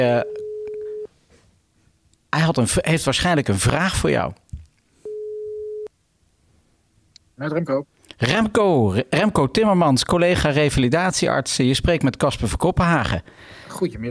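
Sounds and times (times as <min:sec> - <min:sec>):
speech: 0:00.0 - 0:00.4, 0:02.3 - 0:04.5, 0:07.4 - 0:14.0
telephone call ringing tone: 0:00.0 - 0:01.1, 0:05.0 - 0:05.9.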